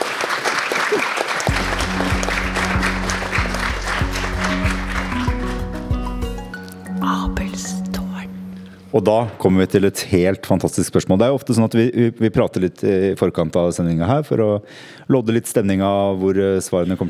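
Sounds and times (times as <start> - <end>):
crowd clapping: 0.0 - 6.6
low sustained musical tune: 1.5 - 9.2
speech: 8.9 - 17.0.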